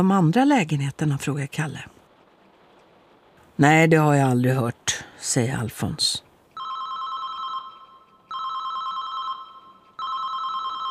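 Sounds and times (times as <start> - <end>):
speech: 0.0 - 2.0, 3.6 - 6.2
mobile phone ringing in stairwell: 6.6 - 10.8.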